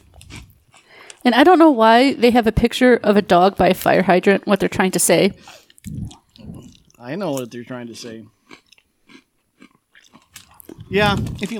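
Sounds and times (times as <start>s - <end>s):
crunching stale French-fry snack: 0.0s - 1.2s, 8.5s - 11.5s
speech: 1.2s - 8.6s, 10.9s - 11.5s.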